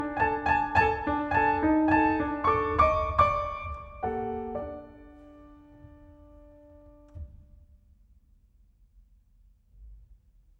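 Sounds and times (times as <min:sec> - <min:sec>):
piano dance piece: 0:00.0 - 0:07.5.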